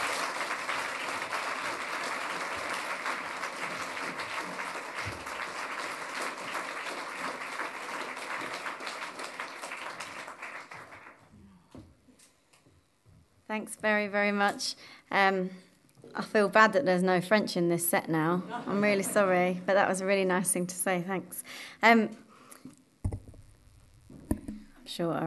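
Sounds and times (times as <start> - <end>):
audience round of applause: 0.0 - 11.3
speech: 13.5 - 22.2, 25.0 - 25.2.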